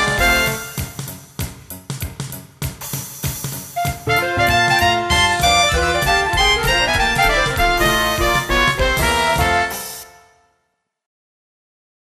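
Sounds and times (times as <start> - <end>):
jazz improvisation: 0.0 - 1.2, 3.7 - 10.2.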